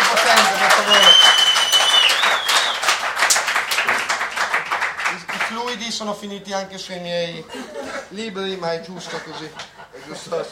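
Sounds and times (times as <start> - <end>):
audience applause: 0.0 - 5.8
speech: 6.0 - 10.5
laughter: 7.4 - 8.1, 8.9 - 10.5.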